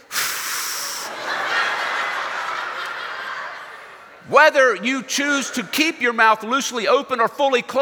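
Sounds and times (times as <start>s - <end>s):
exhaling, blowing air through lips: 0.0s - 1.1s
laughter: 0.9s - 4.3s
speech: 4.3s - 7.8s.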